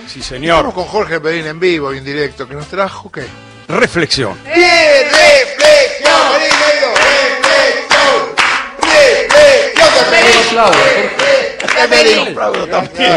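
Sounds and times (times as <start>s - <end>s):
speech: 0.1s - 6.5s, 10.3s - 11.2s, 11.8s - 13.1s
applause in the studio: 5.1s - 12.8s.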